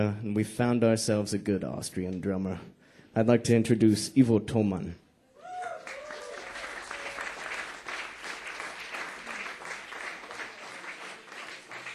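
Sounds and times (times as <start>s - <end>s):
speech: 0.0s - 5.0s
audience applause: 5.5s - 11.9s.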